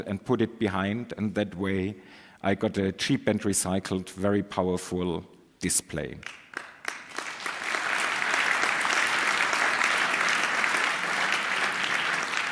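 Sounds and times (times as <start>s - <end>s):
speech: 0.0s - 6.7s
audience applause: 6.3s - 12.5s.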